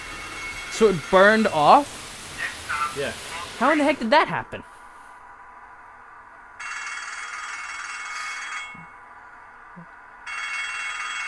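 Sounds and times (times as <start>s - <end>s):
harsh electric bell ringing: 0.0s - 1.8s, 6.6s - 9.0s, 10.2s - 11.2s
speech: 0.8s - 2.0s, 2.9s - 4.7s.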